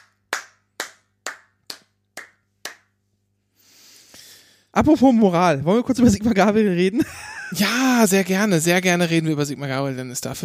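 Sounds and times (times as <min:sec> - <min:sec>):
hand clapping: 0:00.0 - 0:03.0
speech: 0:04.8 - 0:10.4
laughter: 0:07.0 - 0:08.3.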